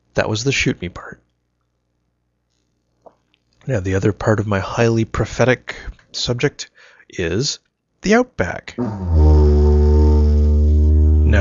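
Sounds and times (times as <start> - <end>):
speech: 0.2 - 1.2, 3.7 - 9.3
didgeridoo droning: 8.8 - 11.3.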